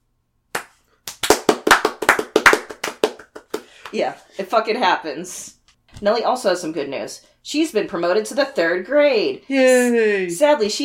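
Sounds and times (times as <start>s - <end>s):
slow clap: 0.5s - 4.0s
speech: 3.9s - 10.8s.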